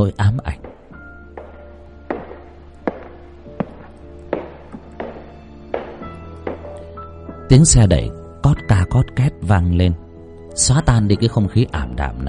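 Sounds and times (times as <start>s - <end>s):
speech: 0.0s - 0.7s, 7.5s - 10.0s, 10.6s - 12.2s
footsteps in a corridor: 0.6s - 7.5s.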